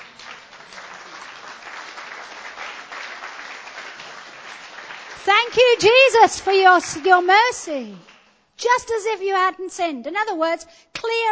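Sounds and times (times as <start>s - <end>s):
audience clapping: 0.0s - 8.4s
speech: 5.2s - 11.3s.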